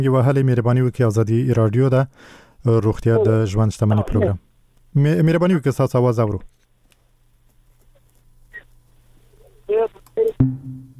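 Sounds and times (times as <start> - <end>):
speech: 0.0 - 6.5
electronic telephone tones on a radio call-in line: 9.7 - 10.5.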